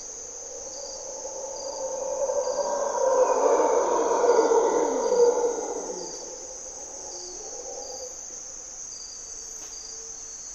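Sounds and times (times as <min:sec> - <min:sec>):
insect drone: 0:00.0 - 0:10.5
Mantled howler monkey roaring: 0:00.2 - 0:08.4.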